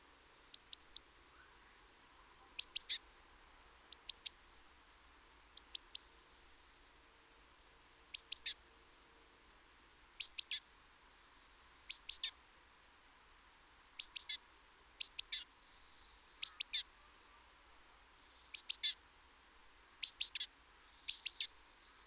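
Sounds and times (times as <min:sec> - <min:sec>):
Great tit calls: 0:00.5 - 0:01.6, 0:02.5 - 0:03.0, 0:03.9 - 0:04.5, 0:05.6 - 0:06.2, 0:08.1 - 0:08.6, 0:10.2 - 0:10.6, 0:11.4 - 0:12.4, 0:14.0 - 0:14.4, 0:15.0 - 0:19.0, 0:20.0 - 0:22.0.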